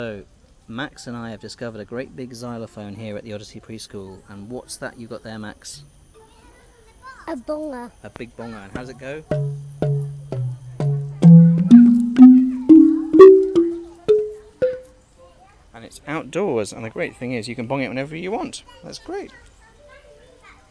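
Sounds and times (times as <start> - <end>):
outdoor xylophone: 9.3 - 14.9.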